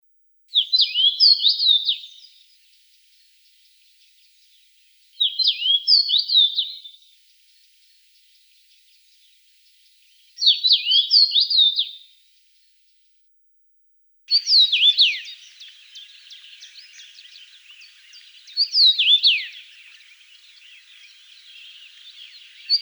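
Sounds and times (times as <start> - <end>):
common rosefinch singing a whistled phrase: 0.5 - 2.4, 5.2 - 7.0, 10.4 - 12.1, 14.3 - 22.7.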